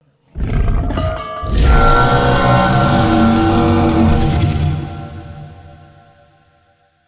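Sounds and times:
creature roar: 0.4s - 5.7s.

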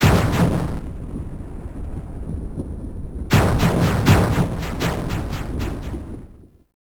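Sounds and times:
boss explosion transition: 0.0s - 0.9s, 3.3s - 6.3s.

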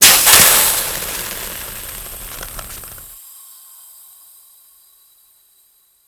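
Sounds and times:
gas burst: 0.0s - 3.2s.

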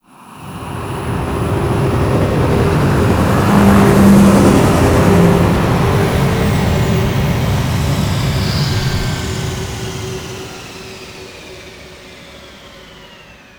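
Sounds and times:
ship passing: 0.5s - 11.2s.

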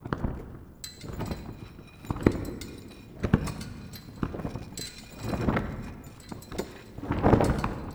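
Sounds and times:
prop flag flapping: 0.0s - 7.9s.

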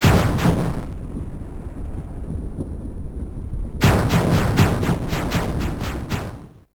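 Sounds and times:
boss explosion transition: 0.0s - 2.0s, 3.8s - 6.6s.

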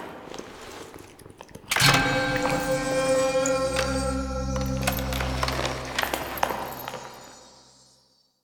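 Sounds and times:
musical stinger: 1.7s - 7.9s.

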